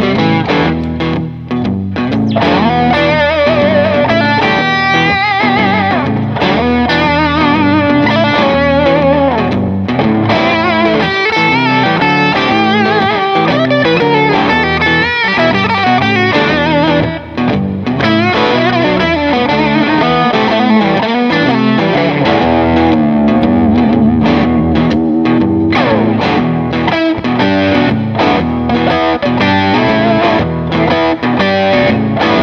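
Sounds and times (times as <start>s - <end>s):
heavy Strat electric guitar: 0.0s - 32.4s.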